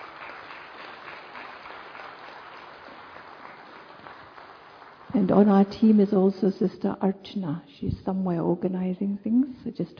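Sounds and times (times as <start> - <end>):
crowd applause: 0.0 - 5.2
speech: 5.2 - 9.9.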